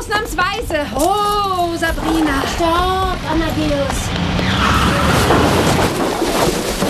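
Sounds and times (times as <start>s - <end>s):
speech: 0.1s - 6.6s
car crashing into a hay wagon: 2.2s - 6.8s.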